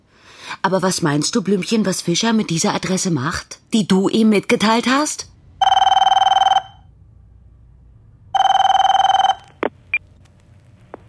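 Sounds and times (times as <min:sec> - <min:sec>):
speech: 0:00.6 - 0:05.3
telephone ringing before answering machine: 0:05.6 - 0:06.9, 0:08.4 - 0:09.7.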